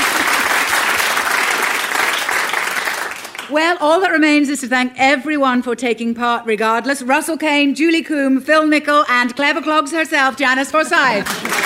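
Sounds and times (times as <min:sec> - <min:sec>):
audience applause: 0:00.0 - 0:03.5, 0:11.1 - 0:11.6
speech: 0:03.5 - 0:11.6.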